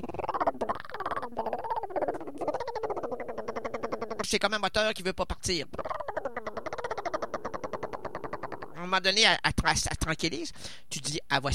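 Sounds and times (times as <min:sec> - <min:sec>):
turtle dove cooing: 0:00.0 - 0:04.3, 0:05.7 - 0:08.8
speech: 0:04.2 - 0:05.8, 0:08.9 - 0:11.5.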